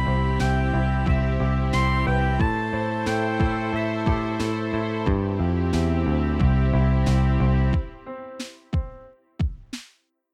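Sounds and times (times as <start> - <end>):
bass: 0.0 - 7.9.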